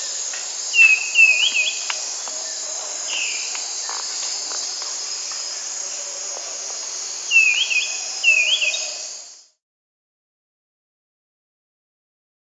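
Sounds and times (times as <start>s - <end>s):
Black-capped Becard Pachyramphus marginatus in Peru: 0.0s - 9.2s.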